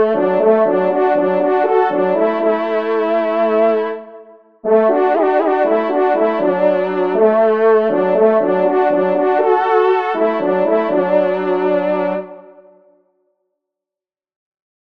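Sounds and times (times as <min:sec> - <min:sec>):
two-voice duet of trompes: 0:00.0 - 0:03.9, 0:04.7 - 0:12.4.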